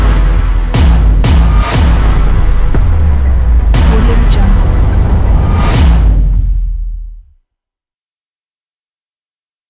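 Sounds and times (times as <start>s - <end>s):
tense serious horror thriller trailer music: 0.0s - 7.4s.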